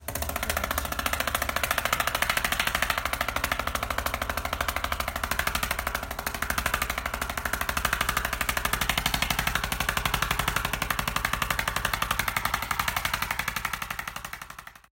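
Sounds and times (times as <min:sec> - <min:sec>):
helicopter: 0:00.0 - 0:14.9.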